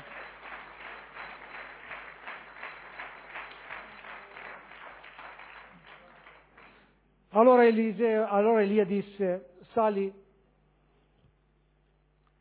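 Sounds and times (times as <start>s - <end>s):
audience applauding: 0.0s - 6.9s
speech: 7.4s - 10.2s.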